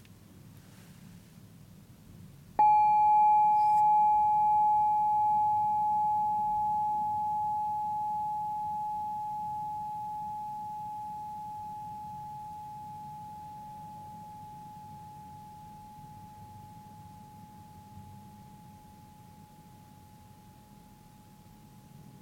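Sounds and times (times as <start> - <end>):
single bell chime ringing: 2.6 - 13.0.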